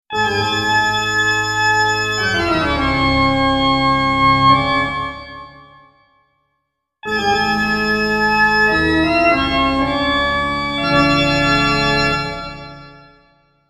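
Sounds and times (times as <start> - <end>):
classical piece: 0.2 - 5.7, 7.2 - 13.2.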